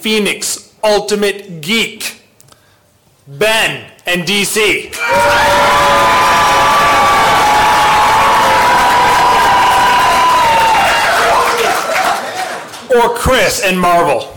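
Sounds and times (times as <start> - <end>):
speech: 0.0 - 2.2, 3.3 - 6.4, 12.9 - 14.3
audience cheering and applause: 5.0 - 12.9.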